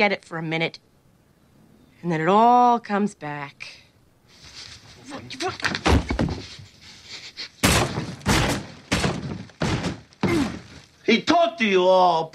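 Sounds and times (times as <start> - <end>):
speech: 0.0 - 0.9, 2.0 - 3.8, 5.1 - 6.6, 11.1 - 12.3
knocking and rustling: 4.5 - 11.0
fist punching a hole through a wall: 7.6 - 10.8.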